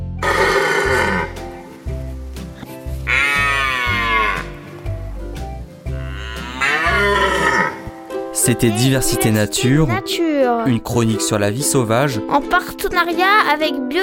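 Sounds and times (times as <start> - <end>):
red deer stag bellowing in the rut: 0.2 - 1.8, 3.0 - 5.0, 5.9 - 8.0
speech: 8.4 - 14.0.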